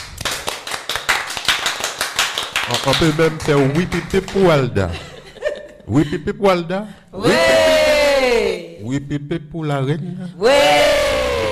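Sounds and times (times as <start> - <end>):
audience applauding after a small group of performers' show: 0.0 - 4.6
speech: 2.7 - 5.1, 5.9 - 7.6, 8.3 - 11.0
laughter: 4.8 - 6.5, 7.2 - 8.2.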